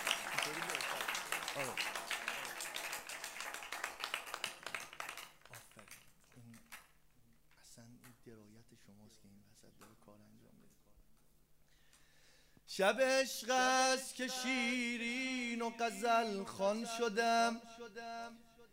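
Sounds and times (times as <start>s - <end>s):
audience clapping during a recited devotional poem: 0.0s - 7.1s
speech: 1.6s - 1.9s, 12.8s - 18.5s.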